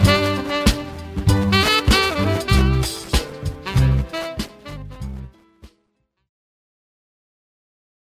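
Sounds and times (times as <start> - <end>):
jazz music: 0.0 - 5.8.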